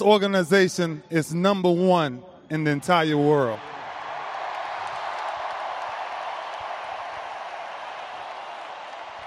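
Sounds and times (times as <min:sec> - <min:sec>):
speech: 0:00.0 - 0:03.7
stadium crowd clapping: 0:03.8 - 0:09.2.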